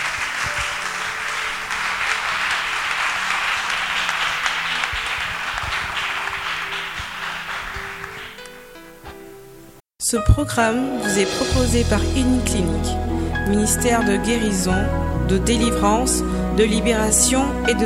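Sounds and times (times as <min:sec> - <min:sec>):
congregation applause at a church healing-ministry gathering: 0:00.0 - 0:08.8
speech: 0:10.1 - 0:17.8.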